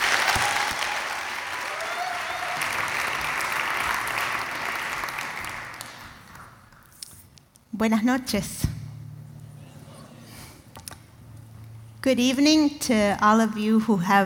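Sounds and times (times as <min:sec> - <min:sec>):
audience applause welcoming a speaker at Hope College: 0:00.0 - 0:06.5
speech: 0:07.8 - 0:08.7, 0:12.1 - 0:14.2.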